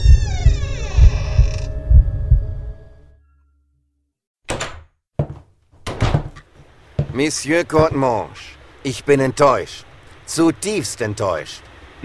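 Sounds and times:
door creaking open: 0.0 - 2.0, 4.5 - 6.5
speech: 7.2 - 12.0.

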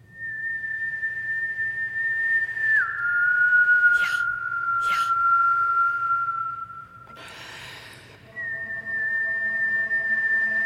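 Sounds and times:
person whistling: 0.0 - 10.6
breathy puffs: 7.1 - 8.3.

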